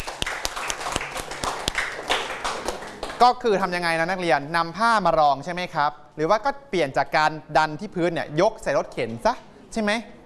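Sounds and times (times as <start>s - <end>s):
classroom students clapping for classmates: 0.0s - 3.4s
speech: 3.2s - 10.2s.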